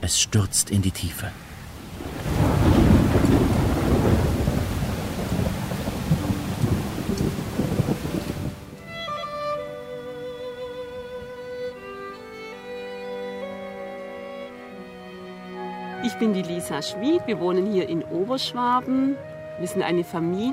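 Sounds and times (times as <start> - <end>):
speech: 0.0 - 2.1, 16.2 - 20.5
wind in a thunderstorm: 0.0 - 20.5
heavy raindrops in a thunderstorm: 1.7 - 9.0.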